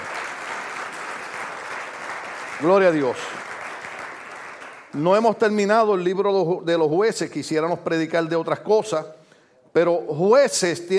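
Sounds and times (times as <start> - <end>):
audience applause: 0.0 - 5.0
speech: 2.6 - 3.5, 4.9 - 10.9.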